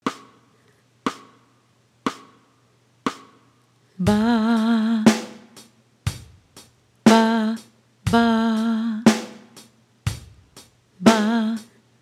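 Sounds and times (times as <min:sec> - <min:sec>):
singers singing: 0:04.0 - 0:05.4, 0:07.1 - 0:09.2, 0:11.0 - 0:11.7.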